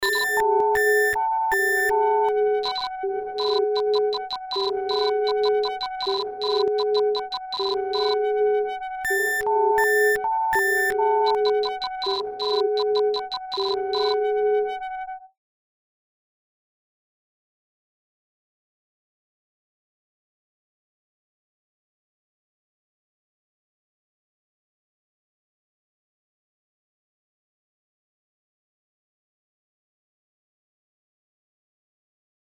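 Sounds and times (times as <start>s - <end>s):
sine wave tone: 0.0s - 15.4s.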